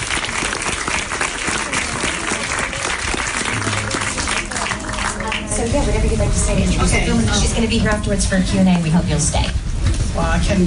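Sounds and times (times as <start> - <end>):
audience applause at the Zurich Film Festival: 0.0 - 7.5
speech: 5.6 - 10.6.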